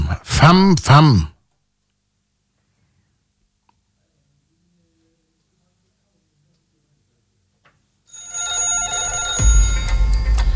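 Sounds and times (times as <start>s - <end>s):
speech: 0.4s - 1.3s
bell ringing: 8.1s - 10.5s.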